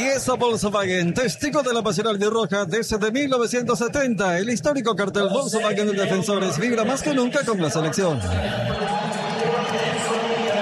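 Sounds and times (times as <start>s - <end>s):
speech: 0.0s - 9.2s
Argentine stadium crowd roaring: 8.1s - 10.5s.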